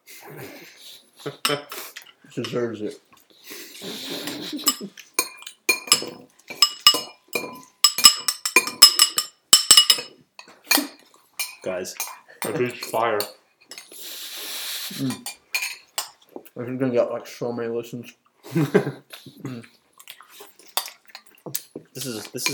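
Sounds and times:
speech: 0.2 - 3.1, 3.8 - 5.1, 11.7 - 13.4, 15.0 - 15.3, 16.6 - 19.8, 22.0 - 22.5
spoon slapping against a bowl: 4.3 - 13.9, 20.8 - 22.5.

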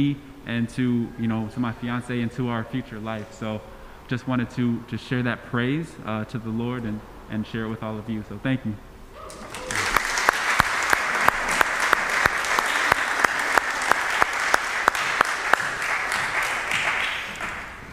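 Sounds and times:
speech: 0.0 - 9.4
audience clapping: 9.2 - 17.9.

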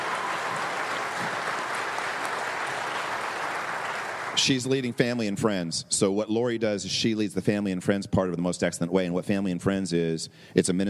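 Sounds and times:
audience applause: 0.0 - 4.6
speech: 4.4 - 10.8.

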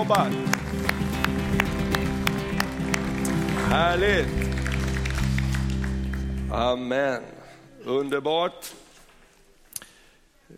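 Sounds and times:
speech: 0.0 - 0.9, 3.7 - 4.5, 6.5 - 8.8
rhythmic round of applause: 0.0 - 6.8.

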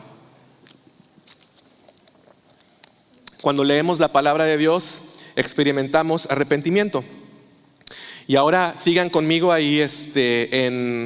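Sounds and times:
person sipping water: 0.6 - 3.4
wet mouth and swallowing noises: 0.6 - 3.4
speech: 3.4 - 7.2, 8.3 - 11.0.

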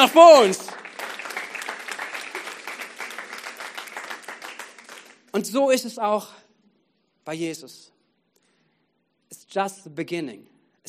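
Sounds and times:
speech: 0.0 - 0.8, 5.4 - 6.4, 7.2 - 8.0, 9.5 - 10.8
audience applause: 0.0 - 5.3.

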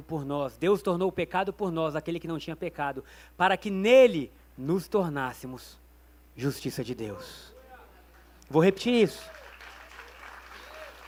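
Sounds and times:
speech: 0.0 - 5.8, 6.4 - 7.5, 8.5 - 9.4
audience applause: 9.1 - 11.0.

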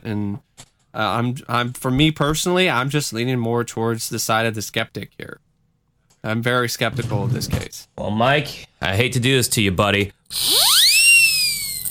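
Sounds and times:
speech: 0.0 - 5.5, 6.2 - 10.8
whistle blowing: 10.4 - 11.8.

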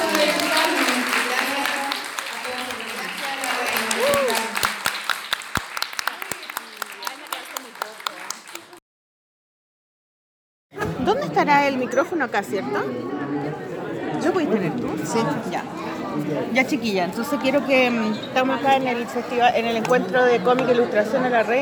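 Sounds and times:
audience applause: 0.0 - 8.8
speech: 11.7 - 21.6.

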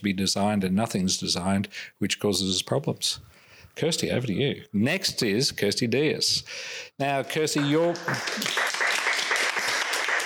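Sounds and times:
speech: 0.0 - 8.6
audience applause for a presenter: 7.6 - 10.2.

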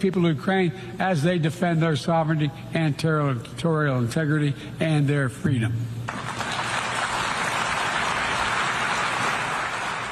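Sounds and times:
speech: 0.0 - 6.4
crowd applauding after a speech: 6.1 - 10.0.

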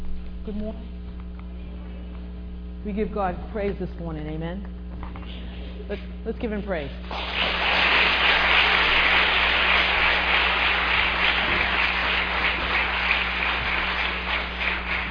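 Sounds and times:
speech: 0.5 - 1.1, 2.8 - 7.5
audience praise clapping: 7.0 - 15.0.

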